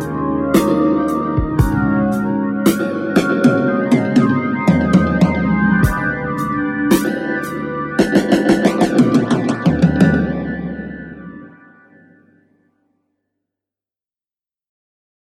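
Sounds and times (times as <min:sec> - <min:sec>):
drums with phaser effect: 0:00.0 - 0:11.7.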